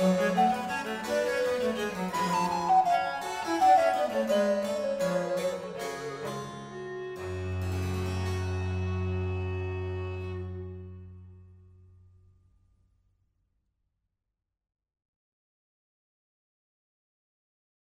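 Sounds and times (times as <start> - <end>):
alto recorder playing a fugue: 0.0 - 6.9
basso continuo: 0.0 - 11.8.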